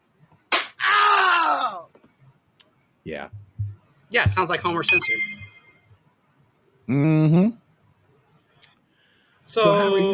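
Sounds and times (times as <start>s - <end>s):
slap: 0.5s - 0.8s
speech: 3.0s - 3.5s, 4.1s - 5.4s, 6.9s - 7.6s, 9.4s - 10.1s.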